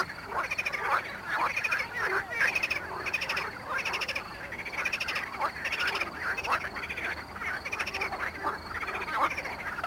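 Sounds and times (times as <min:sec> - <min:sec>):
Pelophylax ridibundus marsh frog chorus croaking at Mali lag, Botevgrad, Bulgaria: 0:00.0 - 0:09.8.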